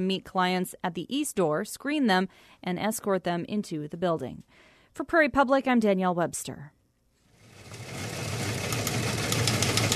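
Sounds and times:
speech: 0.0 - 6.8
teletype machine clattering: 7.9 - 9.9.

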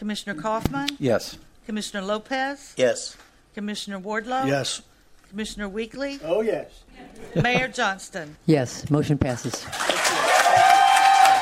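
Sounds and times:
speech: 0.0 - 10.0
applause and cheering at a Key West city commission meeting after a vote: 9.7 - 11.4.

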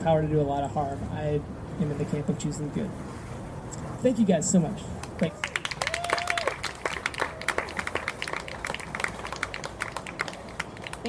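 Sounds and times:
speech: 0.0 - 3.3, 4.0 - 5.5
audience applause: 5.2 - 11.0.

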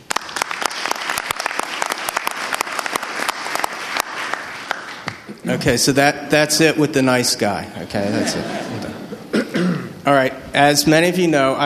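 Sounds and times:
audience applauding: 0.0 - 5.4
speech: 5.4 - 9.0, 10.1 - 11.6
laughter: 7.8 - 9.3.

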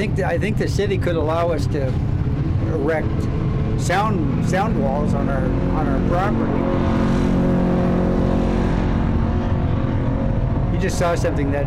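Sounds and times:
speech: 0.0 - 7.2, 10.8 - 11.6
car engines roaring on a road: 0.0 - 11.6.

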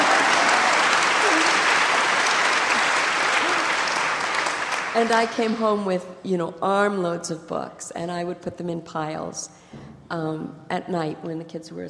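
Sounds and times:
audience clapping: 0.0 - 5.8
speech: 5.0 - 11.8.

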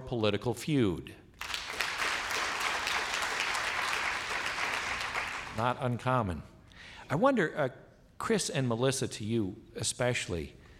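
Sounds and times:
speech: 0.1 - 1.2, 5.6 - 6.5, 7.1 - 10.6
audience clapping: 1.4 - 5.8.

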